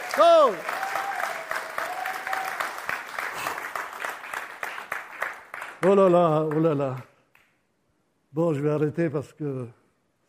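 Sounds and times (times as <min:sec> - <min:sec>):
audience applause: 0:00.0 - 0:07.0
speech: 0:00.2 - 0:00.8, 0:05.8 - 0:07.1, 0:08.4 - 0:09.8.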